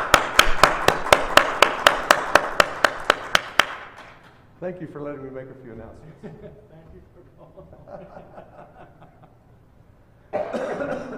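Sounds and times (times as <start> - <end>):
audience clapping in unison: 0.0 - 4.2
speech: 4.7 - 9.1, 10.8 - 11.1
laughter: 6.0 - 9.6.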